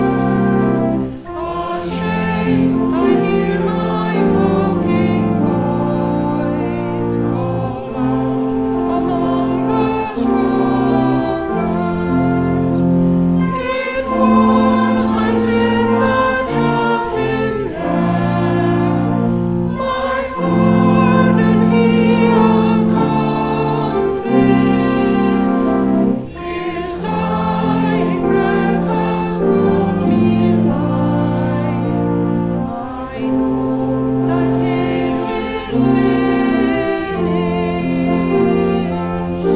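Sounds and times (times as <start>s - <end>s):
hymn: 0.0s - 39.5s.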